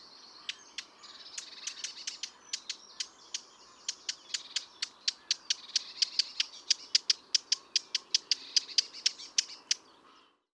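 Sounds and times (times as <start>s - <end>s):
Eurasian blackcap Sylvia atricapilla calling with sharp dry tac notes: 0.4s - 9.8s.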